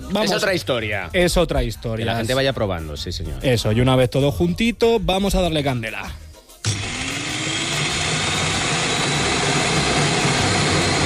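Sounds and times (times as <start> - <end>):
speech: 0.1 - 6.8
electric food chopper running at full power: 6.6 - 11.0.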